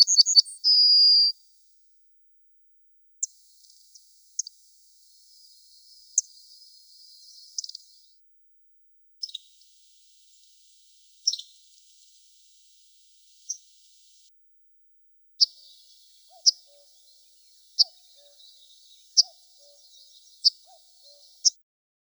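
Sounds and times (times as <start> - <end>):
yellowhammer singing: 0.0 - 1.4, 3.2 - 8.2, 9.2 - 14.3, 15.4 - 21.6.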